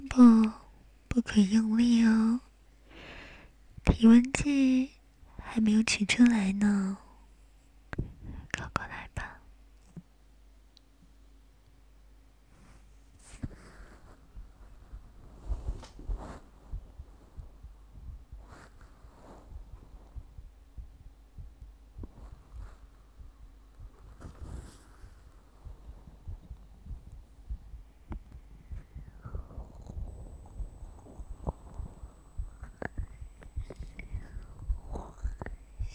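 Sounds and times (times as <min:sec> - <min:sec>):
speech: 0:00.2 - 0:00.4, 0:01.2 - 0:02.5, 0:03.8 - 0:07.0
heartbeat: 0:08.0 - 0:09.4, 0:12.4 - 0:35.9.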